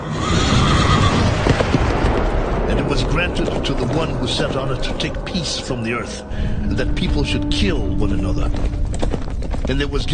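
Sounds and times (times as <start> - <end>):
horse whinnying: 0.0 - 1.5
horse hooves clip-clopping: 0.6 - 10.1
speech: 3.3 - 9.0, 9.7 - 10.1.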